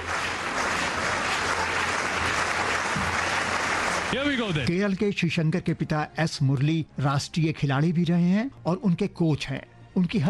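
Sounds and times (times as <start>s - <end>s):
spectators clapping rhythmically before long jump: 0.0s - 4.7s
speech: 4.1s - 10.2s.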